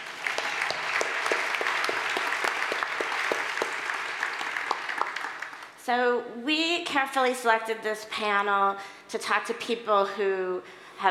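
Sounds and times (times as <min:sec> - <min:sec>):
audience applause: 0:00.0 - 0:05.8
speech: 0:05.9 - 0:11.0.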